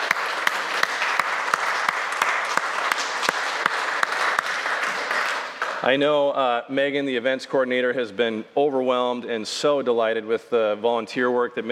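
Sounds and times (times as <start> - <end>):
audience applause: 0.0 - 6.0
speech: 5.8 - 11.7.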